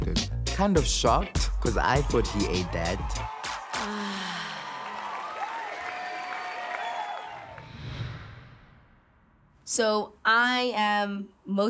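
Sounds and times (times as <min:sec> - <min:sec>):
speech: 0:00.1 - 0:03.3, 0:09.8 - 0:11.6
crowd applauding: 0:01.6 - 0:07.7.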